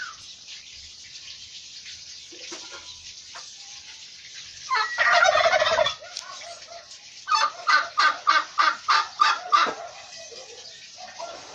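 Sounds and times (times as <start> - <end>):
turkey gobbling: 4.7 - 11.5.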